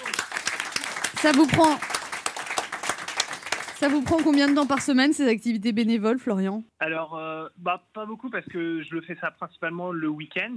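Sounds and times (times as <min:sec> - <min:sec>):
small group clapping: 0:00.0 - 0:05.4
speech: 0:01.2 - 0:01.9, 0:03.8 - 0:10.5.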